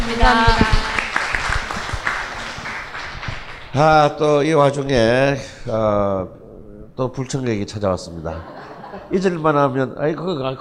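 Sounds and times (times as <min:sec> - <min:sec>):
audience applause: 0:00.0 - 0:04.1
speech: 0:00.2 - 0:00.8, 0:03.8 - 0:06.4, 0:07.0 - 0:10.5
laughter: 0:08.1 - 0:09.8.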